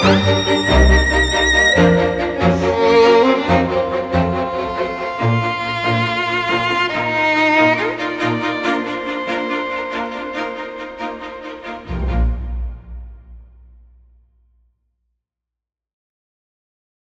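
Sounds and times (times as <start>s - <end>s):
Italian violin: 0.0s - 13.3s.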